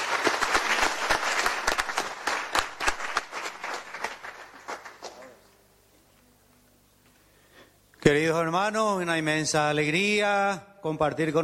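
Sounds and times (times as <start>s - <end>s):
audience applauding: 0.0s - 5.4s
speech: 8.1s - 11.4s.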